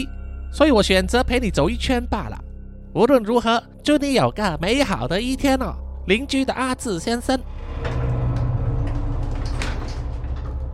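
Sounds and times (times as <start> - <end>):
speech: 0.0 - 7.5
apartment door opening: 7.4 - 10.7.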